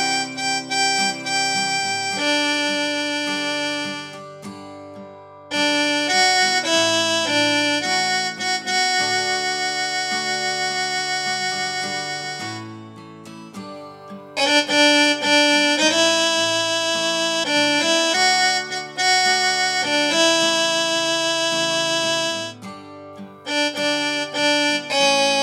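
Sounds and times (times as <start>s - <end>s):
instrumental viola playing: 0.0s - 4.4s, 5.5s - 12.8s, 14.4s - 22.6s, 23.5s - 25.4s.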